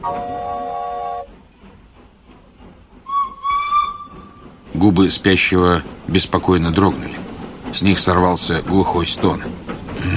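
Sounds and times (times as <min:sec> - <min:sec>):
speech: 0:00.0 - 0:00.5, 0:04.8 - 0:10.1
steam locomotive whistle blowing: 0:00.0 - 0:01.3, 0:03.0 - 0:04.4.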